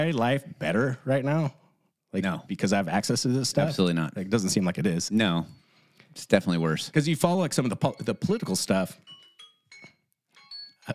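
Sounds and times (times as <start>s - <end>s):
speech: 0.0s - 9.2s
timer going off with electronic chimes: 6.4s - 10.9s.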